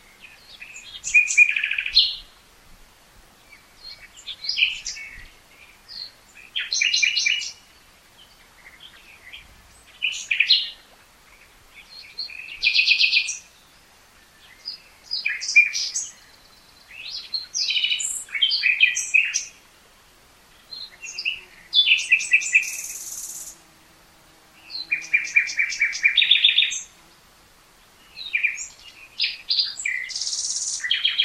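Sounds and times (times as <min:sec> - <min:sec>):
common nightingale song: 0:00.0 - 0:02.4, 0:03.4 - 0:19.6, 0:20.5 - 0:23.6, 0:24.5 - 0:31.2.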